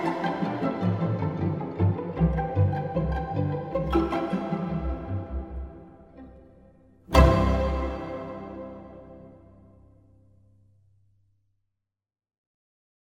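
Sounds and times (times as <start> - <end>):
plucked string polka in a church: 0.0 - 9.8.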